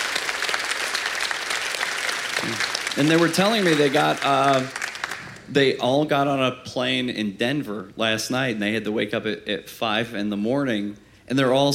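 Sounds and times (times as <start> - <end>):
crowd clapping: 0.0 - 5.5
speech: 2.4 - 4.8, 5.5 - 11.7.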